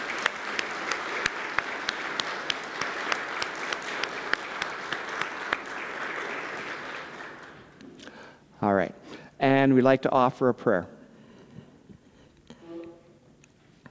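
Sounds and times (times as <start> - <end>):
audience applause: 0.0 - 7.8
speech: 9.6 - 11.0.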